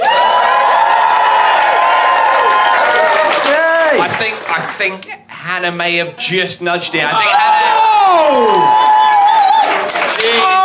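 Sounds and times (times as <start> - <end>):
audience cheering and whooping: 0.0 - 4.2, 7.1 - 10.6
audience clapping: 0.0 - 5.1, 8.3 - 10.6
speech: 4.2 - 9.0.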